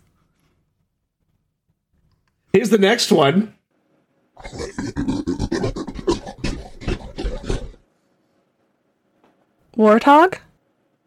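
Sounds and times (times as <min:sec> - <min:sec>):
speech: 0:02.6 - 0:03.6, 0:04.4 - 0:05.1, 0:09.8 - 0:10.4
gorilla vocalization: 0:04.4 - 0:07.8.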